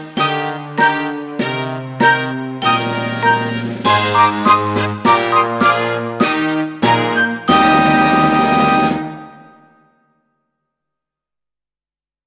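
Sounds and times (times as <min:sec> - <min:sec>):
brass fanfare opener in E flat: 0:00.0 - 0:09.8.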